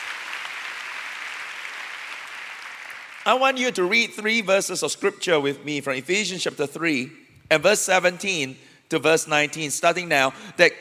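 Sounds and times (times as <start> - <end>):
audience clapping: 0.0 - 3.6
speech: 3.2 - 10.8.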